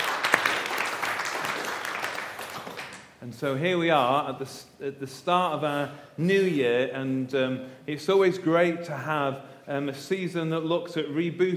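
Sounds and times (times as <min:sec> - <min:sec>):
audience round of applause: 0:00.0 - 0:03.1
speech: 0:03.3 - 0:11.5.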